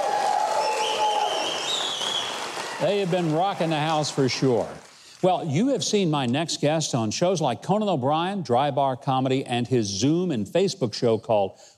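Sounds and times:
studio audience applause: 0:00.0 - 0:05.4
high whistles: 0:00.4 - 0:02.9
speech: 0:02.8 - 0:11.7.

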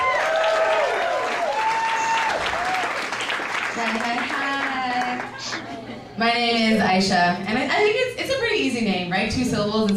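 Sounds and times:
audience whooping and cheering: 0:00.0 - 0:03.6
audience applause: 0:00.0 - 0:05.8
speech: 0:06.2 - 0:09.9.

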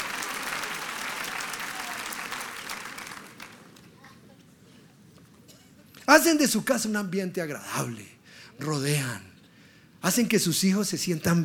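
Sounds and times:
audience applauding: 0:00.0 - 0:04.0
speech: 0:06.1 - 0:09.3, 0:10.0 - 0:11.4.

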